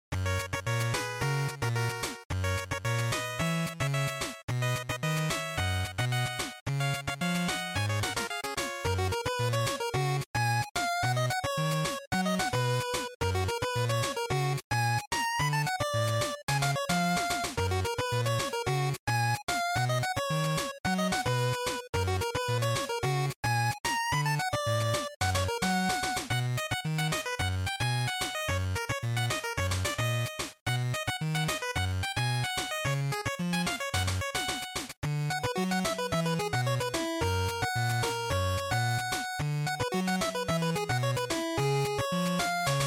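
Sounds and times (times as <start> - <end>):
Game Boy action stage background music: 0.1 - 42.8.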